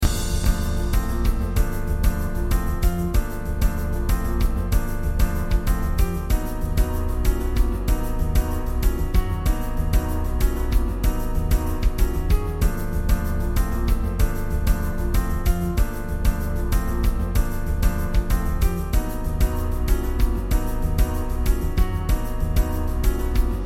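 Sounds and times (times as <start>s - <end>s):
battle music loop: 0.0s - 23.6s.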